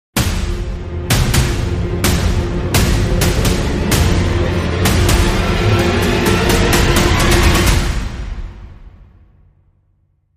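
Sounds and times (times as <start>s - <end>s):
dramatic sting: 0.2s - 9.2s.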